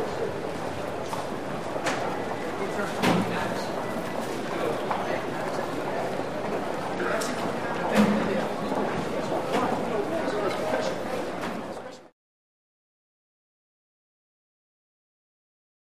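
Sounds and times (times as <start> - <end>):
arena vendor hallway and lobby ambience: 0.0 - 12.1.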